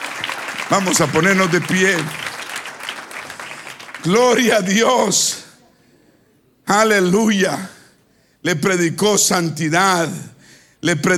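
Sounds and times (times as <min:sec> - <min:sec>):
audience applause: 0:00.0 - 0:04.7
speech: 0:00.7 - 0:02.3, 0:04.0 - 0:05.4, 0:06.7 - 0:07.8, 0:08.4 - 0:11.1.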